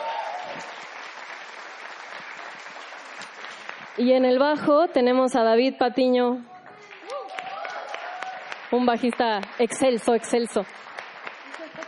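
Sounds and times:
audience applause: 0.0s - 4.0s, 6.8s - 11.8s
speech: 4.0s - 6.5s, 8.7s - 10.9s.

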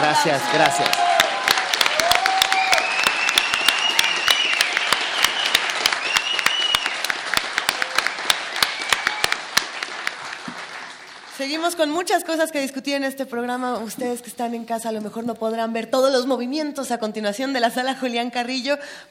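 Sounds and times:
crowd applauding: 0.0s - 11.7s
speech: 0.2s - 1.2s, 11.4s - 19.1s
rising whistles: 2.5s - 7.2s, 8.0s - 9.4s.

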